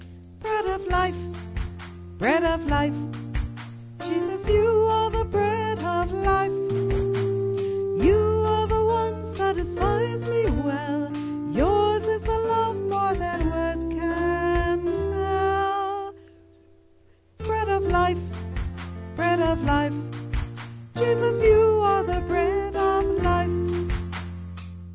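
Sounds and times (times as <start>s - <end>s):
person singing: 0.4s - 1.5s, 2.2s - 3.2s, 4.0s - 16.3s, 17.4s - 18.3s, 19.1s - 20.1s, 21.0s - 24.0s.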